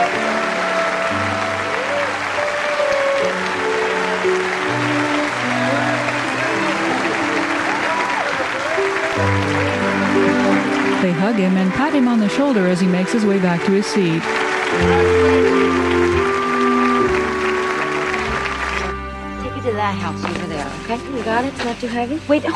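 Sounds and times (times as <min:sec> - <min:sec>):
people standing and clapping: 0:00.0 - 0:21.7
speech: 0:11.3 - 0:15.9, 0:19.9 - 0:22.5.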